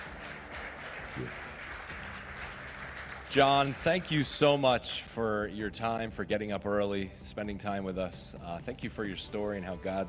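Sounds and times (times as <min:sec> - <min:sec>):
audience applause: 0:00.0 - 0:04.4
speech: 0:01.2 - 0:01.5, 0:03.3 - 0:10.0.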